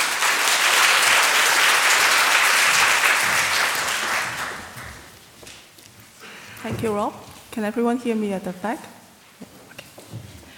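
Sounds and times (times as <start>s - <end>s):
audience applause: 0.0s - 5.1s
speech: 6.6s - 9.0s.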